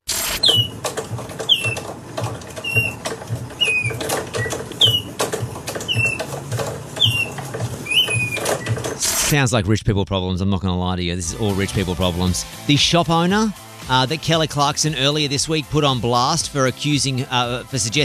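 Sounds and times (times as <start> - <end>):
hand-cranked mechanical bird chirping: 0.1 - 9.3
speech: 9.3 - 18.0.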